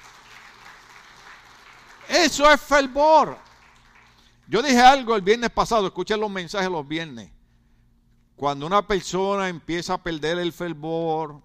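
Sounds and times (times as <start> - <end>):
audience applauding: 0.0 - 4.4
speech: 2.2 - 3.5, 4.5 - 7.4, 8.4 - 11.4.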